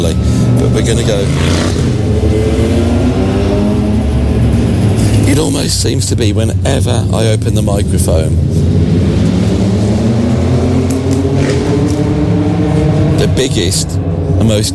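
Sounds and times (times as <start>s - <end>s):
speech: 0.0s - 2.9s, 5.3s - 8.7s, 13.3s - 14.7s
motorbike driving past: 0.4s - 5.3s, 8.4s - 14.2s.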